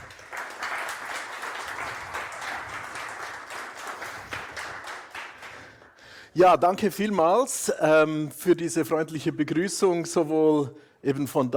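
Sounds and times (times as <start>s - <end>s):
applause: 0.0s - 6.2s
speech: 6.4s - 11.5s.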